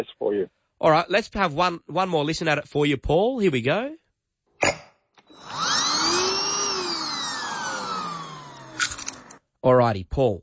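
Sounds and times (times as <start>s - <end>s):
speech: 0.0s - 4.0s, 9.6s - 10.4s
handheld vacuum removed from charger with a click and clack: 5.4s - 9.4s.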